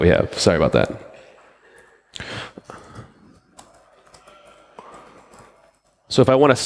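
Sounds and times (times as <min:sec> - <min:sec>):
speech: 0:00.0 - 0:01.1, 0:06.1 - 0:06.6
typing on a computer keyboard to restart a supervisor process: 0:03.3 - 0:06.0.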